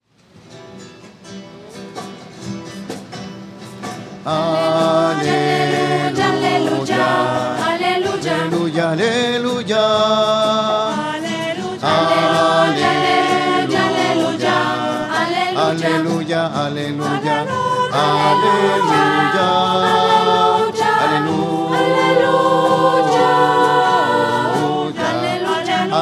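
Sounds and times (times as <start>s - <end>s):
voices singing alleluia: 4.2s - 26.0s.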